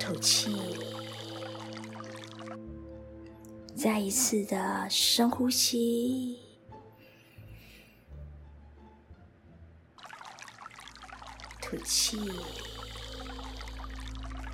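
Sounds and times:
flowing water: 0:00.0 - 0:02.6, 0:10.0 - 0:14.5
speech: 0:00.1 - 0:00.8, 0:03.8 - 0:06.4, 0:11.7 - 0:12.7.

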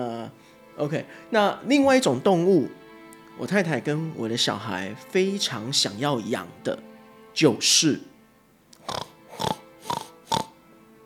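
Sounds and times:
speech: 0:00.0 - 0:02.8, 0:03.4 - 0:08.1, 0:08.9 - 0:09.1
pig oinking: 0:08.8 - 0:10.6.

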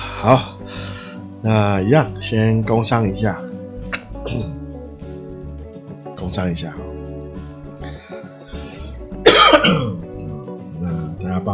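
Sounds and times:
speech: 0:00.2 - 0:00.5, 0:01.4 - 0:03.5, 0:04.2 - 0:04.6, 0:06.2 - 0:06.9
coughing and throat clearing: 0:03.8 - 0:04.6, 0:09.2 - 0:10.2.

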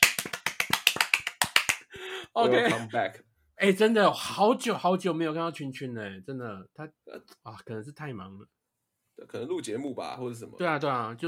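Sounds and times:
sharp hand claps: 0:00.0 - 0:02.0
speech: 0:02.3 - 0:08.6, 0:09.2 - 0:11.2.

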